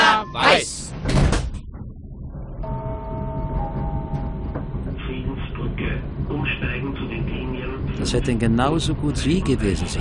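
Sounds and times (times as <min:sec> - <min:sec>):
train sliding doors closing: 0:00.1 - 0:01.7, 0:02.6 - 0:07.8
train pulling away with rumble and electric whine: 0:02.2 - 0:09.2
speech: 0:08.1 - 0:09.9.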